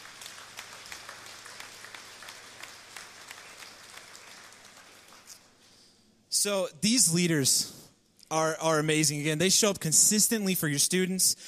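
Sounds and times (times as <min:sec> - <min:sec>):
audience clapping: 0:00.0 - 0:05.7
speech: 0:06.4 - 0:11.4.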